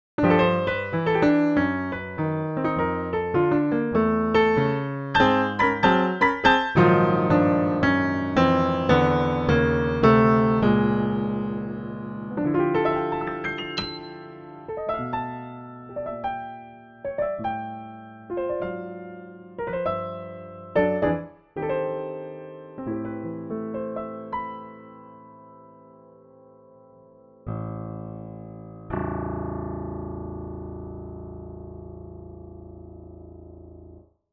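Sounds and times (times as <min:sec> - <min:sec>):
Bechstein, Pleyel and Steinway pianos playing: 0:00.2 - 0:34.0.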